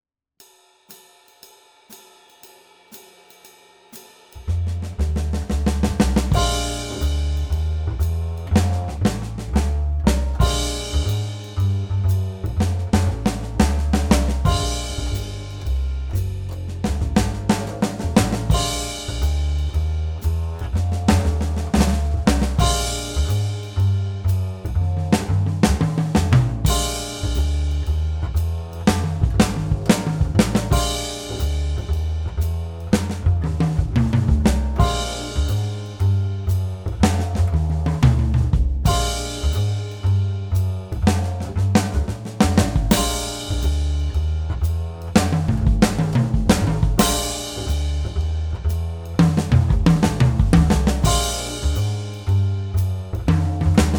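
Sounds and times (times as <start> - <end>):
swing drum fills: 0.4 - 53.9.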